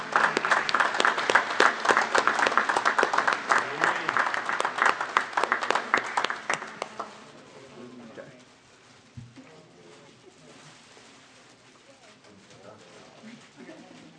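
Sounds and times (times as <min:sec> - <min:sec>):
church audience applause: 0:00.0 - 0:07.3.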